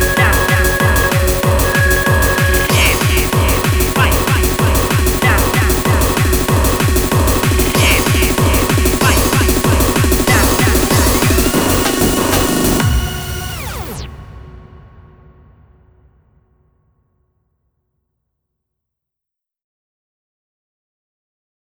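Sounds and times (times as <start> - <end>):
vocal remix: 0.0 - 14.1.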